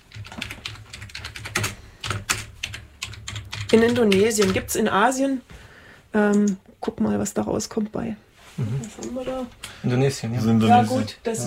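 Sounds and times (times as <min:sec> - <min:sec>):
rapid typing on a computer keyboard: 0:00.0 - 0:04.7
speech: 0:03.7 - 0:05.5, 0:06.1 - 0:11.4.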